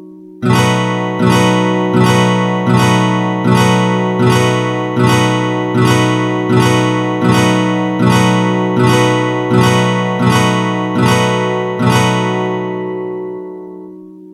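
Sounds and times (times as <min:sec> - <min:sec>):
E chord progression: 0:00.0 - 0:14.2.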